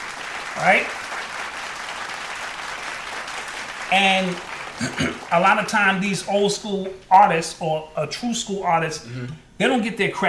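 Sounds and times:
audience clapping: 0.0 - 6.1
speech: 0.6 - 1.0, 3.9 - 10.2.

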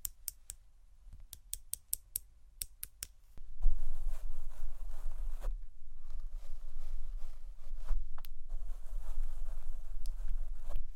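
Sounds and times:
microphone brushing: 3.6 - 10.9.

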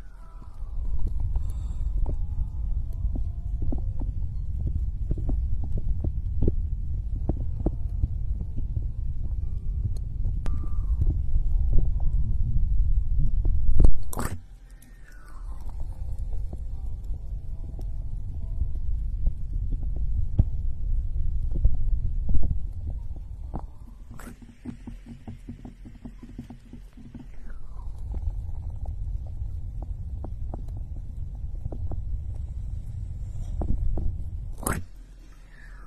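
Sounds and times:
muffled rubbing of ear picking and ear massage: 0.0 - 35.8
sharp brief scrapes and clicks: 13.8 - 16.6, 23.5 - 28.4, 33.2 - 35.8.

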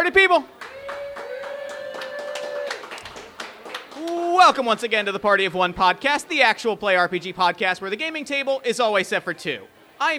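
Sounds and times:
speech: 0.0 - 0.8, 4.4 - 10.1
hands clapping at a tabletop role-playing game session: 0.6 - 4.9.

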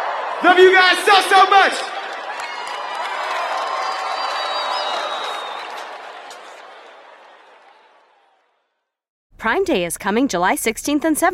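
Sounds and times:
festival crowd screaming and cheering: 0.0 - 8.6
speech: 0.4 - 2.0, 9.4 - 11.3.

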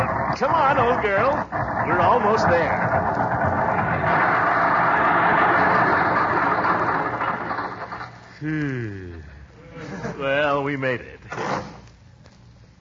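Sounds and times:
car motor sputtering: 0.0 - 8.2
speech: 0.4 - 5.2, 8.4 - 9.0, 10.2 - 11.6.

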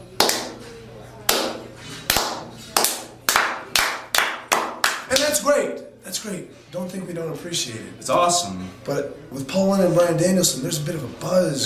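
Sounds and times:
hands clapping: 0.2 - 0.7, 1.3 - 5.4
speech: 5.6 - 11.6.

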